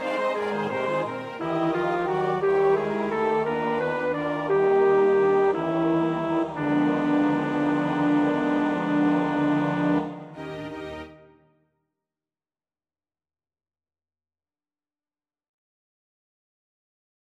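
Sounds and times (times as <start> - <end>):
baritone voice: 0.0 - 11.2.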